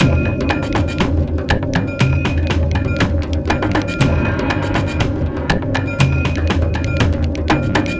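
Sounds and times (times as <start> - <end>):
ambient mood music loops: 0.0 - 7.9.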